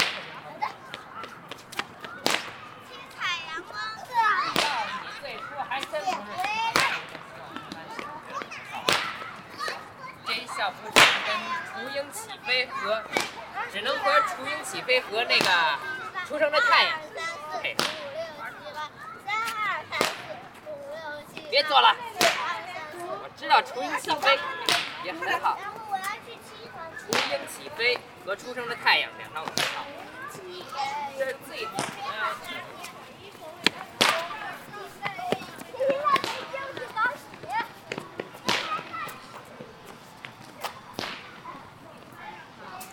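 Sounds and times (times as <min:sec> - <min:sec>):
sharp whip-like cracks at Ditan Park in Beijing: 0:00.0 - 0:00.4, 0:01.8 - 0:02.6, 0:04.5 - 0:04.9, 0:06.7 - 0:07.2, 0:08.8 - 0:09.2, 0:11.0 - 0:11.4, 0:13.1 - 0:13.4, 0:17.8 - 0:18.1, 0:20.0 - 0:20.4, 0:22.2 - 0:22.5, 0:24.6 - 0:25.0, 0:27.1 - 0:27.5, 0:29.5 - 0:29.9, 0:34.0 - 0:34.4, 0:38.5 - 0:38.9, 0:41.0 - 0:41.3
children talking and playing: 0:00.0 - 0:42.9
steady murmur of voices: 0:00.0 - 0:42.9.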